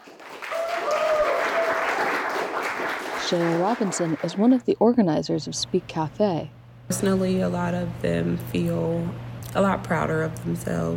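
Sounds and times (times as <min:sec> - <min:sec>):
crowd applause: 0:00.0 - 0:04.6
crowd hooting and hollering: 0:00.5 - 0:02.4
speech: 0:03.3 - 0:10.9.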